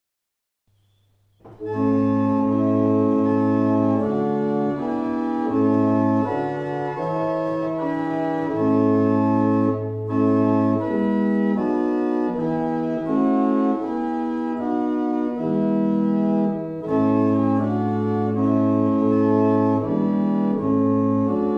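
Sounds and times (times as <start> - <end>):
barrel organ: 0.8 - 21.5.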